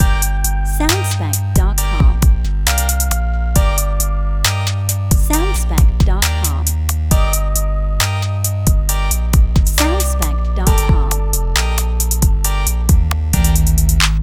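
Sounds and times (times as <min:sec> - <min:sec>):
gangsta rap beat loop: 0:00.0 - 0:14.2.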